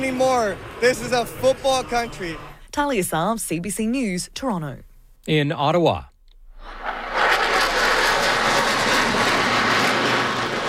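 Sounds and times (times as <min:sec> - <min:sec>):
CF-18 Hornets and F-35 Lightning IIs conducting a flypast: 0:00.0 - 0:02.5, 0:06.6 - 0:10.6
speech: 0:00.0 - 0:06.1.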